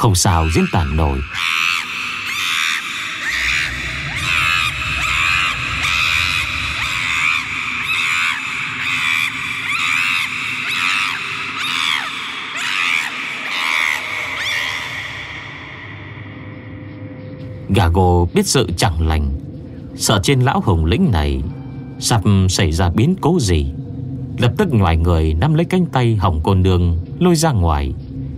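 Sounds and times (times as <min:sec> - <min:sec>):
speech: 0:00.0 - 0:01.8, 0:18.0 - 0:23.8, 0:24.4 - 0:28.0
silver-haired ape shrieking in terror: 0:00.0 - 0:16.5.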